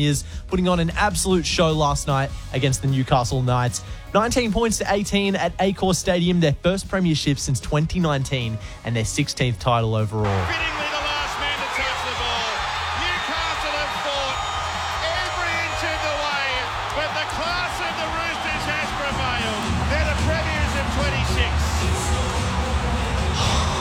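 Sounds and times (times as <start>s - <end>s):
speech: 0.0s - 10.8s
stadium crowd cheering: 10.2s - 23.7s.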